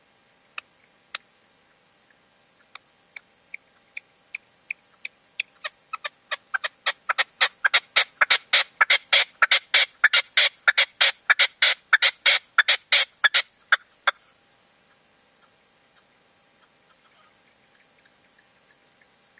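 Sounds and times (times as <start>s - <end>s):
partridge or tinamou song: 0.0s - 19.3s.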